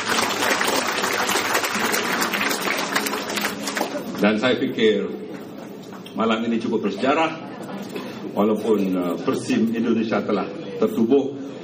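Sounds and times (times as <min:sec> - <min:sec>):
thunderous applause from a large crowd: 0:00.0 - 0:04.1
speech: 0:04.2 - 0:05.2, 0:06.2 - 0:07.4, 0:08.4 - 0:11.4.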